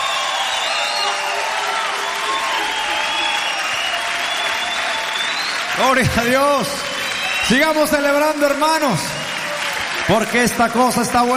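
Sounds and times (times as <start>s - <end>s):
whoops: 0.0s - 5.7s, 6.6s - 8.0s
audience applauding: 0.0s - 11.3s
speech: 5.8s - 6.9s, 7.5s - 9.2s, 10.1s - 11.3s.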